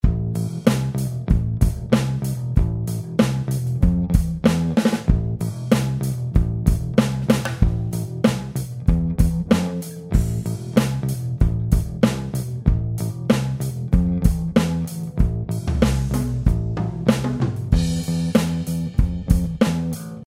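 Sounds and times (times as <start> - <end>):
bass: 0.0 - 20.2.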